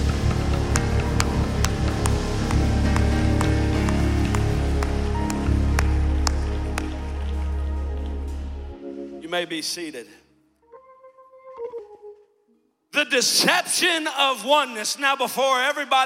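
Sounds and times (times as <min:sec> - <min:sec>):
audience clapping hands: 0:00.0 - 0:08.8
speech: 0:09.4 - 0:10.2, 0:13.0 - 0:16.0.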